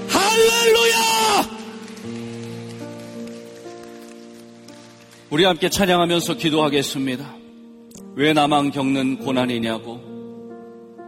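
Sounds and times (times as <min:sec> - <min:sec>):
audience applause: 0:00.7 - 0:04.9
speech: 0:05.3 - 0:07.4, 0:08.2 - 0:10.1.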